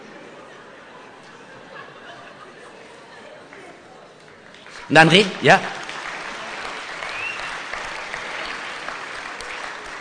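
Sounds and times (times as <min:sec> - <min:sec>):
laughter: 0:00.0 - 0:04.1
audience applause: 0:03.5 - 0:09.9
speech: 0:04.9 - 0:05.8.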